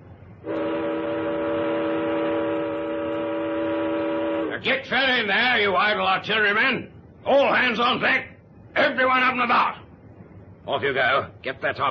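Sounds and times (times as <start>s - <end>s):
ship's siren blaring: 0.4s - 4.6s
speech: 4.6s - 8.3s, 9.0s - 9.8s, 10.6s - 11.8s.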